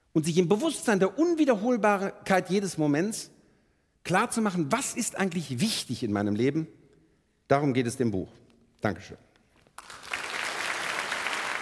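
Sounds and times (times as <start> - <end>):
speech: 0.2 - 3.4, 4.0 - 6.8, 7.5 - 9.2
audience applause: 9.8 - 11.6.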